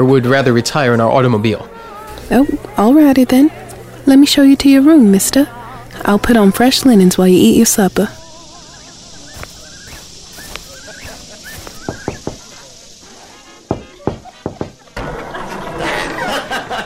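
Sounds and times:
speech: 0.0s - 1.7s, 2.3s - 8.2s
laughter: 0.4s - 4.1s, 5.3s - 6.1s, 8.0s - 16.8s
knocking on a door: 13.7s - 14.8s.

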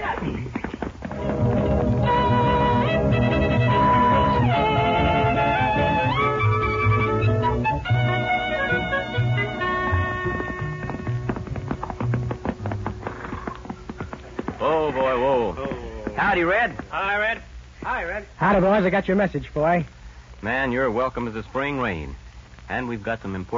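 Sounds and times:
galloping horse hooves: 0.0s - 19.4s
loud bright musical score: 1.1s - 10.8s
speech: 16.4s - 23.5s.

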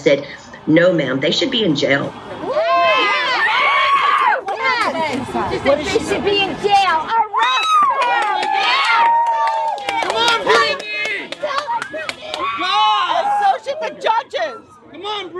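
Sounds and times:
speech: 0.0s - 2.5s, 5.1s - 7.7s, 13.8s - 15.3s
crowd of supporters screaming outside courthouse: 2.2s - 4.8s, 7.2s - 15.3s
scattered clapping: 7.8s - 12.6s.

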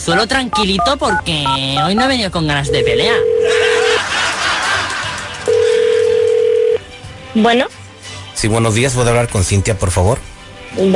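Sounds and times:
speech: 0.0s - 3.7s, 7.4s - 7.8s, 8.4s - 10.2s, 10.8s - 10.9s
telephone ringing tone: 2.6s - 4.0s, 5.5s - 6.8s
laughter: 3.4s - 5.8s.

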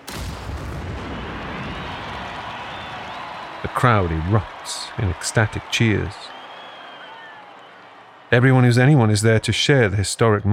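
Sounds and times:
21-gun salute fired by soldiers: 1.5s - 7.8s
speech: 3.6s - 6.4s, 8.3s - 10.5s.

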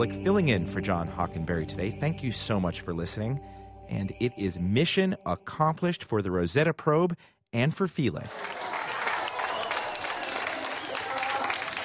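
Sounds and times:
speech: 0.0s - 8.6s
space agency staff applauding: 8.3s - 11.8s
space agency staff cheering: 8.3s - 11.8s.

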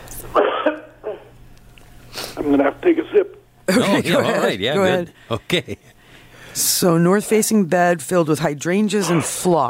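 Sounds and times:
throat-clearing cough: 0.4s - 1.3s
speech: 2.4s - 6.0s, 6.6s - 9.6s
laughter: 3.7s - 5.9s.

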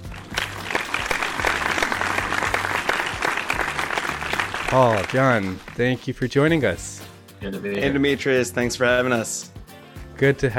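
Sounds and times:
studio audience applause welcoming guests: 0.0s - 6.0s
speech: 4.7s - 9.6s, 10.2s - 10.5s.

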